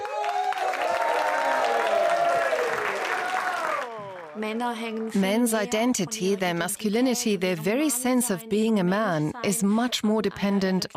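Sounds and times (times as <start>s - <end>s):
crowd whooping: 0.0s - 5.2s
audience applause: 0.0s - 5.8s
speech: 4.4s - 10.9s.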